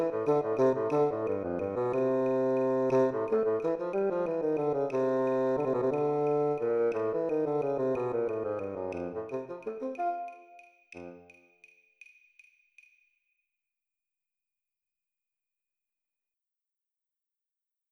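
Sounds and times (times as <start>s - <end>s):
bassoon playing: 0.0s - 11.3s.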